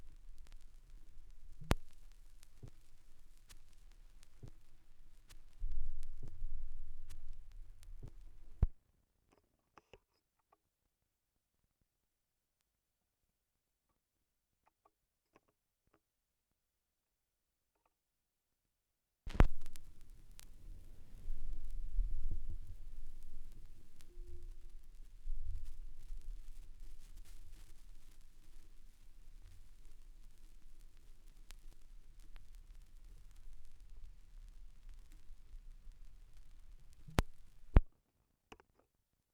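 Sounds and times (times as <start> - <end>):
vinyl record crackle: 0.0 - 8.8, 19.3 - 37.9.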